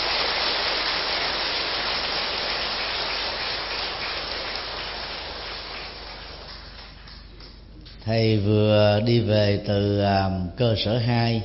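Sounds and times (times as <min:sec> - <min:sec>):
audience applause: 0:00.0 - 0:07.5
speech: 0:08.1 - 0:11.4.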